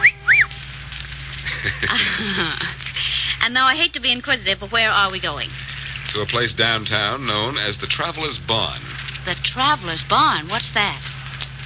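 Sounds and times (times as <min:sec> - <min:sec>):
short human whistle: 0:00.0 - 0:00.6
laughter: 0:01.4 - 0:03.4
speech: 0:01.6 - 0:11.1.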